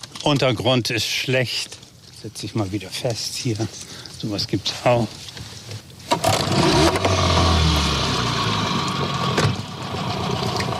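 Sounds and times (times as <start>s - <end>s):
speech: 0.2s - 5.2s
boat motor started, reversing: 6.2s - 10.7s.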